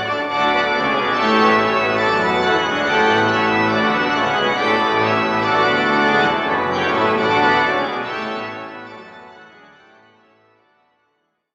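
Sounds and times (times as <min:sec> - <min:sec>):
French organ music: 0:00.0 - 0:10.6.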